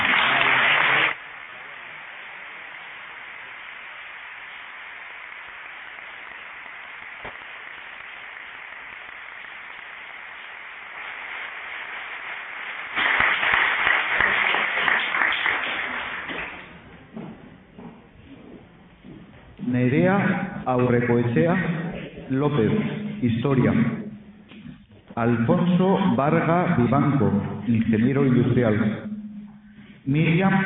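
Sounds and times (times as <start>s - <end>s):
audience applause: 0.0s - 16.8s
speech: 20.7s - 24.0s, 25.2s - 29.1s, 30.1s - 30.6s.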